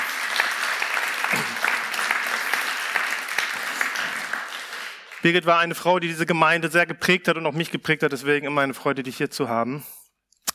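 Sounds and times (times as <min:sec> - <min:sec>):
audience applauding: 0:00.0 - 0:05.8
speech: 0:05.2 - 0:10.0.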